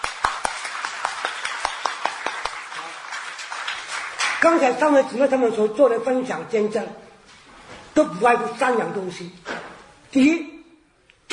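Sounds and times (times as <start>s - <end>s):
audience applauding: 0.0s - 4.5s
speech: 4.4s - 7.0s, 8.0s - 9.5s, 10.1s - 10.5s.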